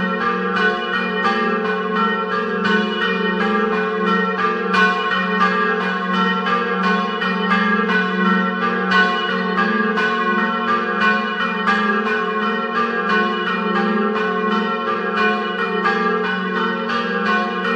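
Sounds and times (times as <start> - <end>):
bells: 0.0 - 17.7.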